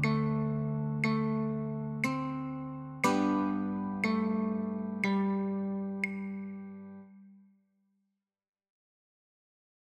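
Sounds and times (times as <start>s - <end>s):
guitar playing chords and notes of a children's song: 0.0s - 7.3s.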